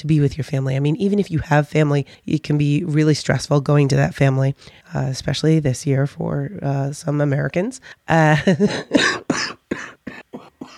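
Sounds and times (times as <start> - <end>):
speech: 0.0 - 9.5
sick person coughing: 8.6 - 10.7.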